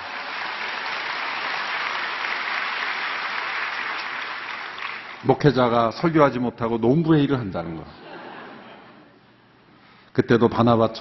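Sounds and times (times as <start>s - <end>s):
audience applause: 0.0s - 5.3s
speech: 5.2s - 8.0s, 10.2s - 10.9s
laughter: 8.0s - 9.1s.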